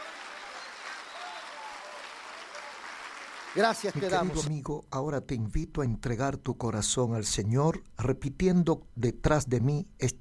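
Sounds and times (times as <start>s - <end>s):
audience applauding: 0.0s - 4.5s
speech: 3.6s - 10.1s.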